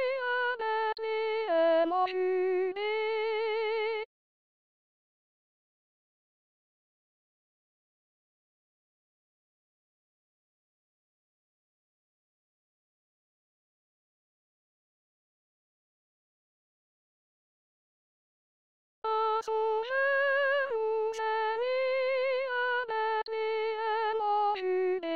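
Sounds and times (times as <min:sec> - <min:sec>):
soprano singing: 0:00.0 - 0:04.1, 0:19.1 - 0:25.1.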